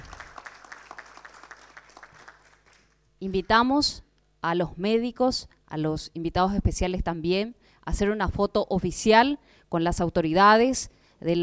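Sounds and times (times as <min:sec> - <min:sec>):
audience applause: 0:00.0 - 0:03.0
speech: 0:03.2 - 0:11.4.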